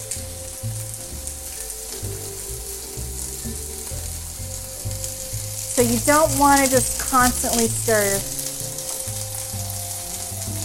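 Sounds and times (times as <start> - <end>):
food sizzling in a hot pan: 0.0 - 10.6
speech: 5.8 - 8.4.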